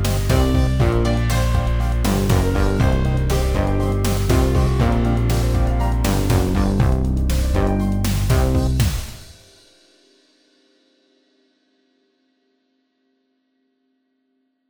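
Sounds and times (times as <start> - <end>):
distorted sound: 0.0 - 9.4.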